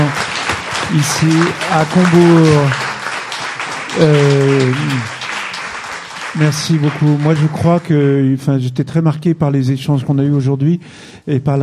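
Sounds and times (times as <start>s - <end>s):
audience applause: 0.0s - 8.1s
speech: 0.9s - 2.8s, 4.0s - 5.2s, 6.4s - 11.6s.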